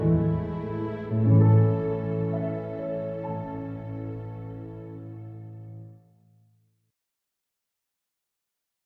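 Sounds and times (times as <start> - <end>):
strings: 0.0 - 6.0.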